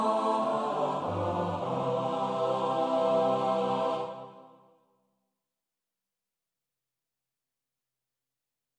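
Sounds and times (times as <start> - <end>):
soprano alto tenor bass choir: 0.0 - 4.8.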